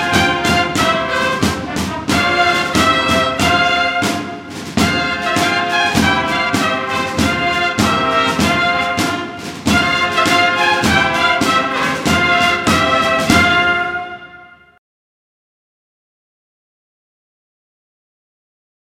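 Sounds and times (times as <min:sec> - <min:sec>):
bugle and drum band playing: 0:00.0 - 0:14.8.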